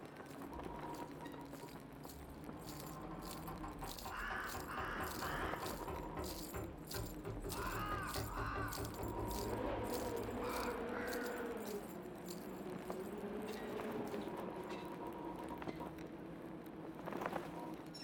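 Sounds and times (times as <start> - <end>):
nighttime ambience: 0.0 - 17.9.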